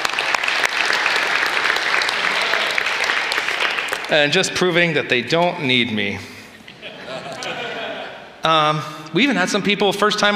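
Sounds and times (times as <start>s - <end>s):
audience applauding: 0.0s - 4.5s
speech: 4.1s - 6.3s, 8.4s - 10.3s
laughter: 6.6s - 8.4s.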